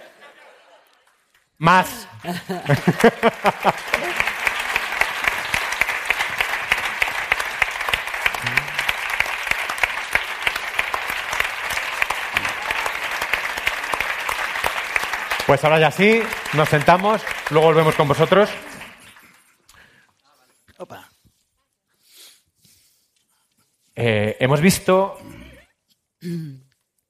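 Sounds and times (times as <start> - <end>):
laughter: 0.0 - 1.2, 1.8 - 5.3, 8.4 - 8.9, 16.1 - 19.5
speech: 1.6 - 4.3, 15.5 - 18.7, 24.0 - 25.3
audience applause: 1.6 - 19.6.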